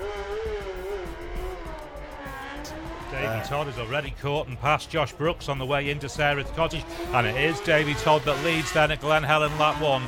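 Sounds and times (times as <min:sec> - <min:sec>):
racing motorcycle engine setting off from the start of a road race: 0:00.0 - 0:10.0
speech: 0:03.2 - 0:10.0.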